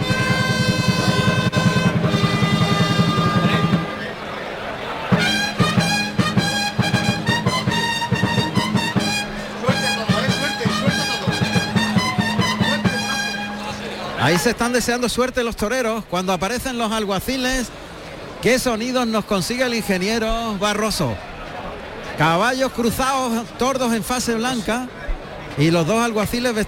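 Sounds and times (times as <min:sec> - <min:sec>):
bugles playing in the Plaza de Toros de Úbeda: 0:00.0 - 0:04.2, 0:05.0 - 0:14.5
speech: 0:14.3 - 0:17.8, 0:18.4 - 0:21.3, 0:22.2 - 0:25.0, 0:25.6 - 0:26.6.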